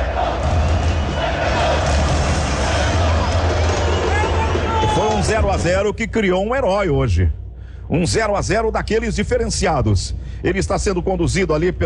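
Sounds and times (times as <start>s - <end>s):
stadium crowd roaring: 0.0s - 5.6s
speech: 5.6s - 11.8s.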